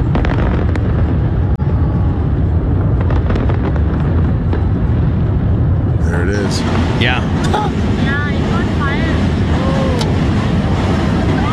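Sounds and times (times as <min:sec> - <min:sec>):
fireworks exploding during a fireworks show: 0:00.0 - 0:11.5.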